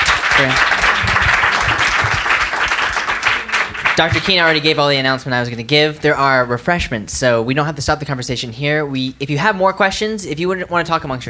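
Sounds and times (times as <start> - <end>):
audience applause: 0.0 - 4.8
speech: 0.4 - 0.7, 4.0 - 11.2.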